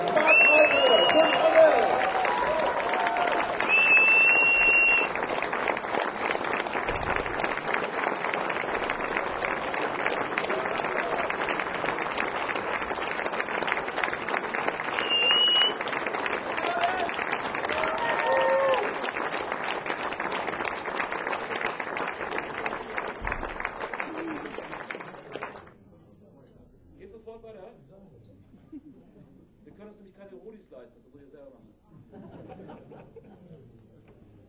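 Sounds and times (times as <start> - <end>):
thunderous audience applause: 0.0 - 25.8
laughter: 31.9 - 33.8.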